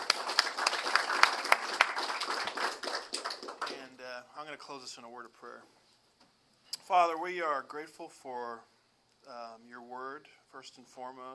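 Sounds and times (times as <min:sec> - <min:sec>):
audience applause: 0:00.0 - 0:03.8
speech: 0:04.5 - 0:05.8, 0:06.9 - 0:11.3.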